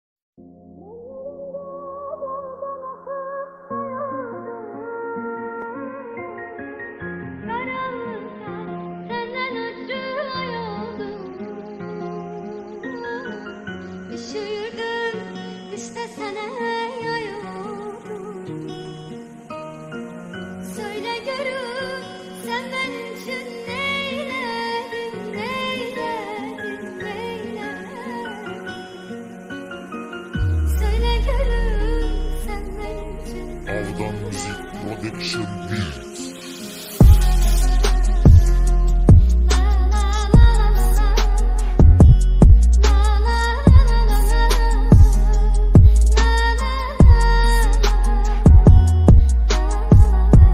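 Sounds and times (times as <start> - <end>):
sad Turkish music: 25.8 - 50.5.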